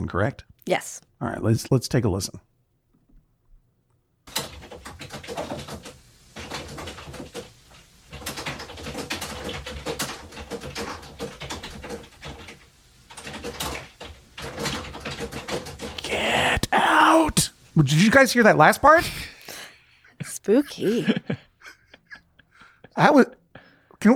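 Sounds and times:
speech: 0.0 - 2.5, 17.8 - 19.3, 20.5 - 21.4, 23.0 - 23.4
loud typing on a keyboard: 4.3 - 17.3
laughter: 17.2 - 23.7.

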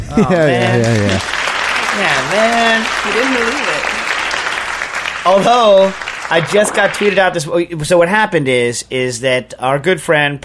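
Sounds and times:
speech: 0.1 - 1.4, 2.0 - 3.9, 5.2 - 10.4
clapping: 0.7 - 7.3.

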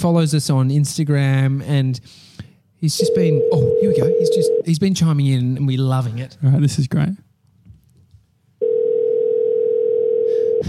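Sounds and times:
speech: 0.0 - 7.2
outgoing phone call ringing tone: 3.0 - 4.6, 8.6 - 10.6.

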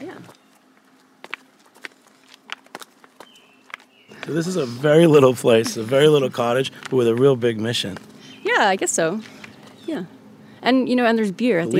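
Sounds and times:
low hum: 0.0 - 11.7
footsteps walking down steps toward a small brewery: 0.1 - 8.2
speech: 4.3 - 11.7.

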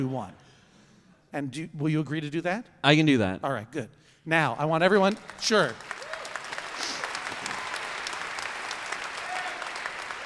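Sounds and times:
speech: 0.0 - 0.4, 1.3 - 6.0
spontaneous audience applause: 4.9 - 10.2.

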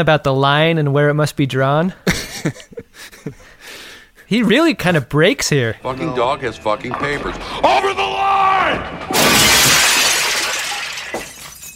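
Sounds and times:
speech: 0.0 - 3.4, 4.3 - 8.1
glass ships smashing: 6.8 - 11.7
tinkling glass shards: 9.2 - 11.7.

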